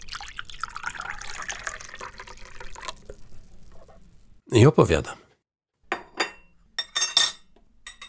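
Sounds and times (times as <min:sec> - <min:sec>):
coffee being poured: 0:00.0 - 0:04.2
speech: 0:04.5 - 0:05.2.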